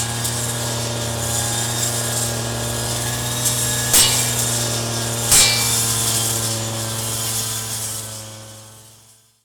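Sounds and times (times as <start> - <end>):
grass cutting: 0.0 - 8.8.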